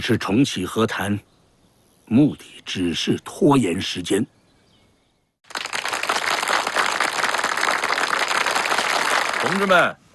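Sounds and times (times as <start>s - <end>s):
speech: 0.0s - 1.3s, 2.1s - 4.4s, 9.4s - 10.0s
audience applause: 5.5s - 9.8s.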